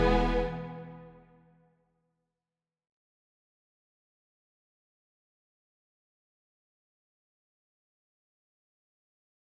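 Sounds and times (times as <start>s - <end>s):
string ensemble playing a suite postlude: 0.0s - 1.2s.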